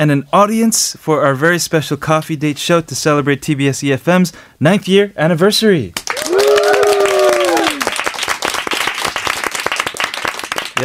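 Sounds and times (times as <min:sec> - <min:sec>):
speech: 0:00.0 - 0:06.0
live studio audience applause: 0:06.0 - 0:10.8.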